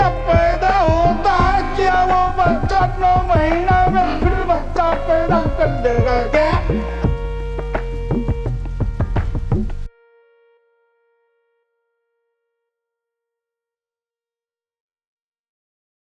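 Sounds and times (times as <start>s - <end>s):
music beat: 0.0s - 9.9s.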